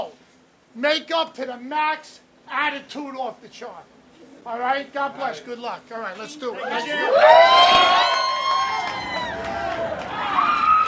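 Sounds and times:
speech: 0.8s - 8.2s
several voices screaming at a haunted house opening: 6.6s - 10.8s.

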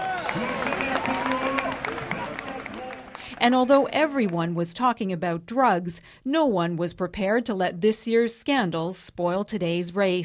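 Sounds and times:
fans cheering riders at race finish: 0.0s - 4.6s
speech: 0.4s - 0.6s, 3.4s - 10.2s.

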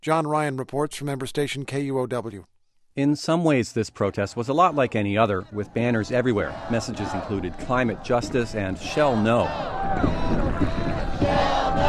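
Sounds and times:
speech: 0.0s - 10.9s
hundreds of paddles banging against boats: 6.0s - 11.8s.

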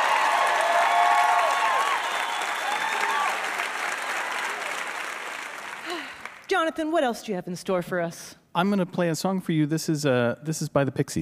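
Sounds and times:
cheers and whoops: 0.0s - 5.2s
audience applause: 0.0s - 6.5s
speech: 6.6s - 11.2s.

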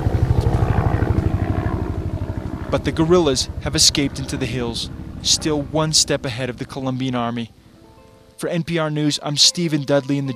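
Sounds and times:
Black Hawk helicopters circling: 0.0s - 8.1s
speech: 2.7s - 7.6s, 8.4s - 10.3s.

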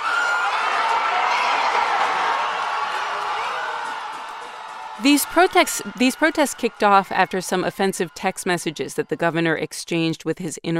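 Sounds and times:
crowd celebrating in the street in San Juan: 0.0s - 10.0s
speech: 5.0s - 10.7s.

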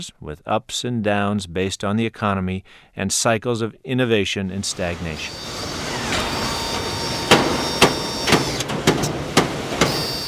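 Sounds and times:
speech: 0.0s - 5.8s
faint high whines: 4.6s - 8.7s, 9.8s - 10.2s
factory assembly-line machinery hum: 4.6s - 10.2s
sharp metallic clanks and bangs: 5.8s - 10.2s.

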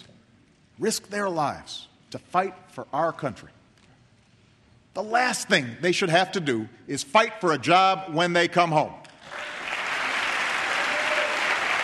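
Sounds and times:
speech: 0.8s - 3.6s, 5.0s - 9.4s
audience applause: 9.2s - 11.8s.

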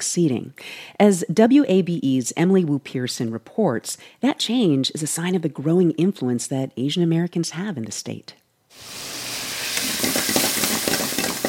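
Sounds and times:
speech: 0.0s - 9.1s
jalapenos stir-frying in a screaming hot wok: 8.7s - 11.4s.

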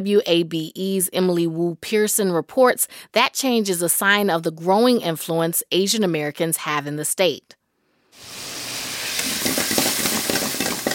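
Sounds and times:
speech: 0.0s - 7.6s
jalapenos sizzling in a hot wok: 8.1s - 10.9s
scraping and tossing clatters as ingredients are stirred: 9.2s - 10.9s.

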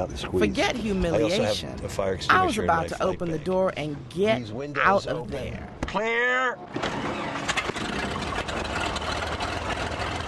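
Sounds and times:
speech: 0.0s - 7.3s
rickety loud plane engine: 6.7s - 10.2s.

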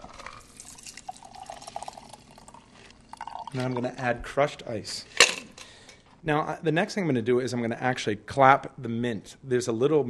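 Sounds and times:
cocktail strained from a shaker into a glass: 0.0s - 4.0s
speech: 3.5s - 5.2s, 6.2s - 10.0s.

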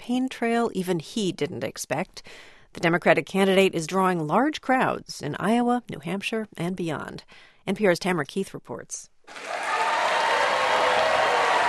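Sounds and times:
speech: 0.0s - 9.7s
standing ovation in a packed 700-seat auditorium at Drake University in Des Moines: 9.3s - 11.6s.

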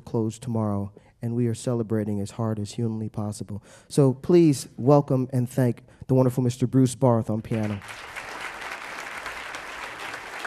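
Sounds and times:
speech: 0.1s - 8.2s
audience applause for jazz musicians: 7.5s - 10.4s.

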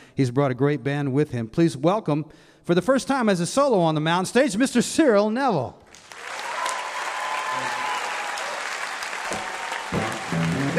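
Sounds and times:
speech: 0.2s - 5.8s
audience clapping hands: 5.9s - 10.7s.

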